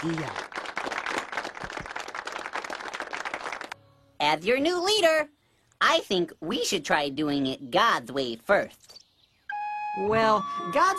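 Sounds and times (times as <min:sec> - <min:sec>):
speech: 0:00.0 - 0:00.4, 0:04.2 - 0:08.9, 0:10.0 - 0:10.9
clapping: 0:00.0 - 0:03.8.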